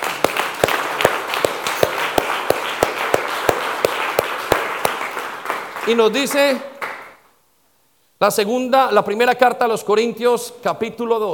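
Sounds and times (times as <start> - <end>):
audience applause: 0.0 - 7.0
sharp steady rhythmic clap beat: 0.0 - 7.2
speech: 5.9 - 6.7, 8.2 - 11.3.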